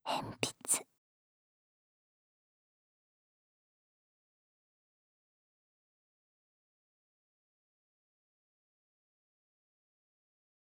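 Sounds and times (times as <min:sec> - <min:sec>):
pencil ASMR sounds: 0:00.1 - 0:00.8.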